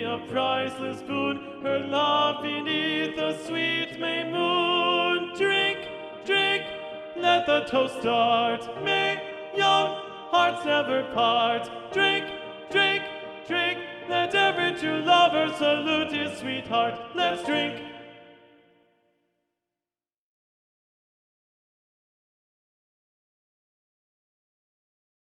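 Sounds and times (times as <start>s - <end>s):
TTBB male choir singing a drinking song with first tenor predominant: 0.0s - 18.3s.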